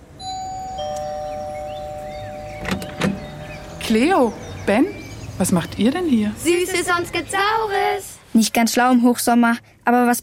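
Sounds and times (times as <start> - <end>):
doorbell two-note chime: 0.2 - 3.2
rattling bumps: 1.8 - 4.4
speech: 3.9 - 10.2.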